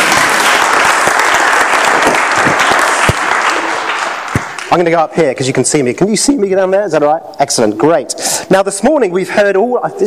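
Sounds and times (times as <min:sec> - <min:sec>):
audience round of applause: 0:00.0 - 0:04.8
speech: 0:04.7 - 0:10.0.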